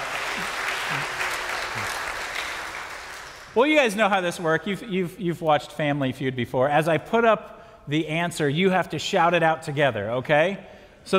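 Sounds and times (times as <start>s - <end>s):
crowd applause: 0.0s - 3.6s
speech: 3.6s - 11.1s.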